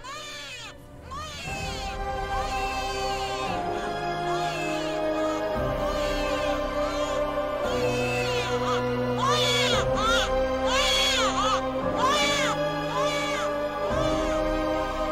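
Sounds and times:
newborn baby crying with echo: 0:00.0 - 0:15.0.

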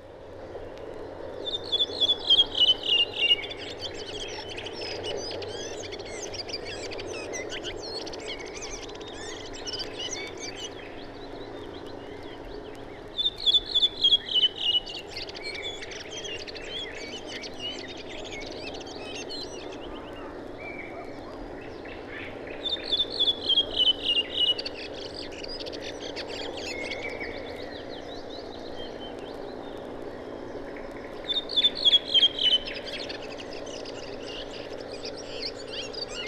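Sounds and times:
faint chirping of other birds: 0:00.0 - 0:36.2
redwing song, late migrant in northern Poland: 0:00.0 - 0:36.2.

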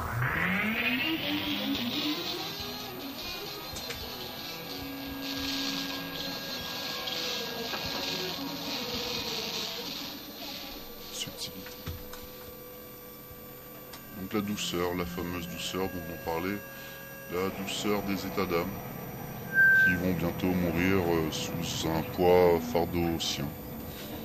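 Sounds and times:
washing machine running and speeding up: 0:00.0 - 0:24.2
speech: 0:14.3 - 0:18.9, 0:19.9 - 0:23.6.

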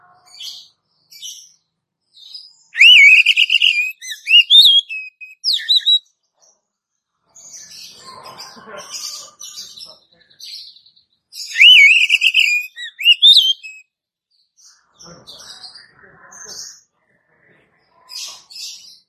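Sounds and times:
Oriental magpie-robin whistled phrase: 0:02.8 - 0:06.0, 0:11.5 - 0:13.8.

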